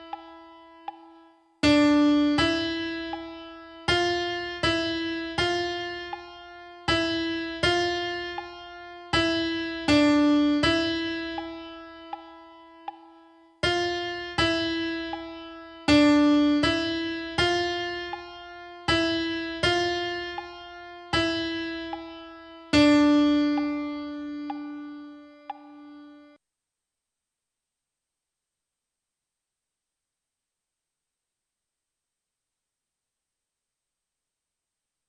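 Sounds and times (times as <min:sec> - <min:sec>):
piano: 0:00.0 - 0:26.4.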